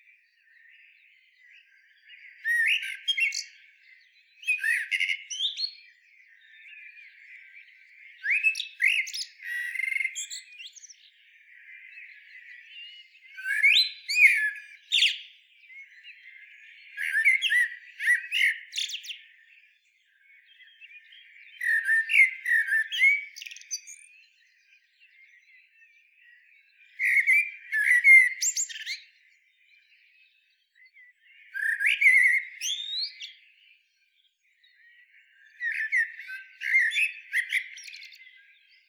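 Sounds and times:
Eurasian blackbird singing: 0.0 - 38.8.

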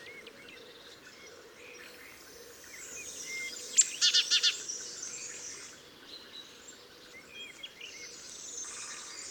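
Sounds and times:
great tit buzzy chattering: 1.8 - 5.6
other birds thin descending whistles: 1.8 - 5.7.

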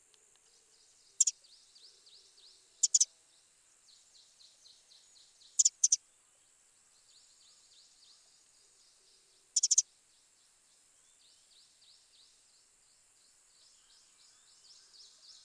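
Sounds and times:
Eurasian wren calling with hard ticking clicks: 1.2 - 1.4, 2.8 - 3.1, 5.6 - 6.0, 9.6 - 9.8
soft high twittering: 2.8 - 3.1, 5.6 - 6.0, 9.6 - 9.8.

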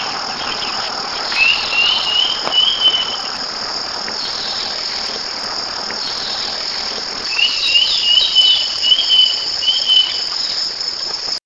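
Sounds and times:
bird trilling: 0.0 - 3.3, 7.3 - 10.2
background hiss: 0.0 - 11.4
high insect-like hum: 0.0 - 11.4.

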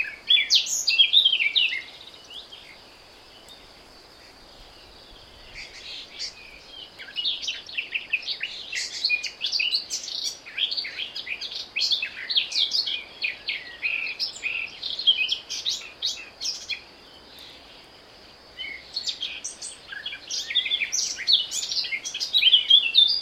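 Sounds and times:
Eurasian blackcap song: 0.0 - 2.8, 5.5 - 17.9, 18.5 - 23.2.

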